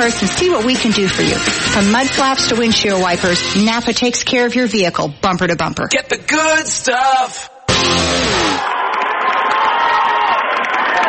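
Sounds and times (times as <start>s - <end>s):
speech: 0.0s - 8.8s
crowd cheering at basketball game: 7.7s - 11.0s.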